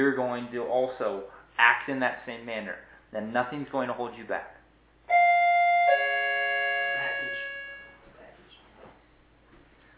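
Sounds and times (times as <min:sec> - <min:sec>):
speech: 0:00.0 - 0:04.6
doorbell ringing: 0:05.1 - 0:08.0.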